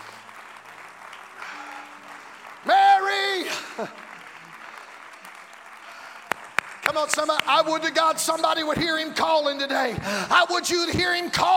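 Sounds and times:
audience clapping hands: 0:00.0 - 0:11.5
speech: 0:03.8 - 0:04.2, 0:06.9 - 0:11.5.

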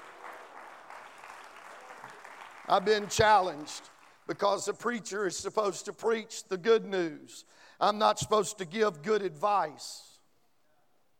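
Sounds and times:
audience clapping: 0:00.0 - 0:04.8
speech: 0:02.7 - 0:10.1.

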